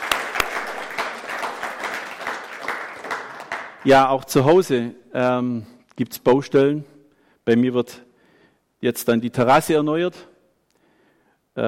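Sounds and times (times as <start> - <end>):
audience applause: 0.0 - 3.9
speech: 3.8 - 8.0, 8.8 - 10.3.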